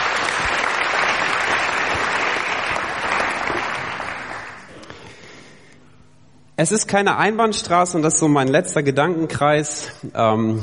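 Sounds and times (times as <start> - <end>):
audience applause: 0.0 - 4.9
speech: 6.6 - 10.6.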